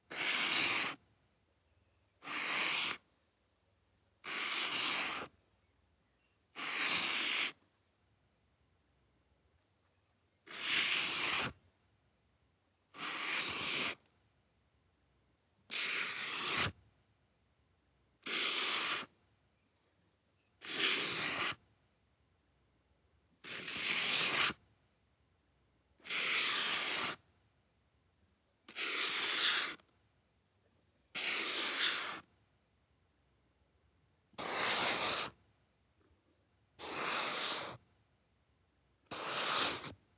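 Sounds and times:
marker writing: 0.1s - 1.0s, 2.2s - 3.0s, 4.2s - 5.3s, 6.6s - 7.6s, 10.5s - 11.6s, 13.0s - 14.0s, 15.7s - 16.7s, 18.3s - 19.1s, 20.6s - 21.6s, 23.5s - 24.6s, 26.0s - 27.2s, 28.7s - 29.8s, 31.2s - 32.3s, 34.4s - 35.4s, 36.8s - 37.8s, 39.1s - 40.0s.

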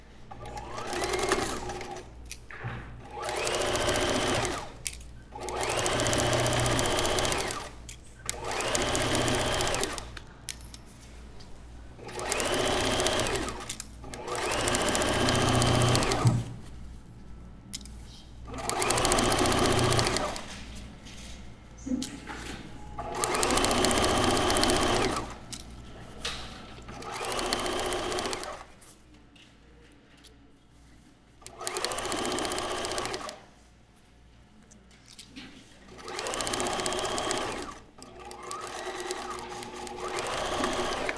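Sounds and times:
modern sewing machine: 0.3s - 10.6s, 11.9s - 16.7s, 18.4s - 20.8s, 22.5s - 28.8s, 31.4s - 33.5s, 35.7s - 41.1s.

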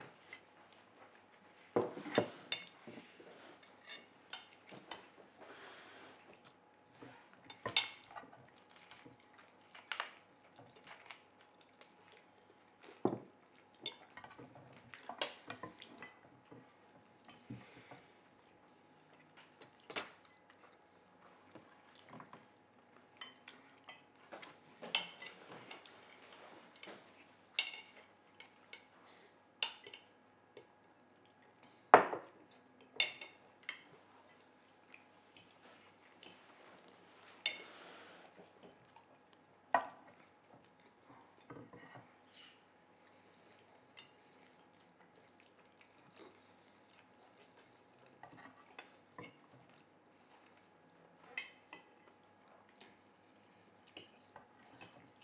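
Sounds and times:
dinner table ambience: 0.0s - 55.2s.

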